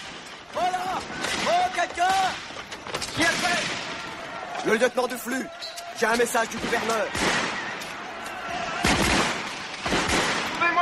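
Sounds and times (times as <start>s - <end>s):
gunfire in a tense standoff: 0.0s - 4.2s, 6.2s - 8.0s, 8.7s - 10.8s
speech: 4.6s - 7.4s.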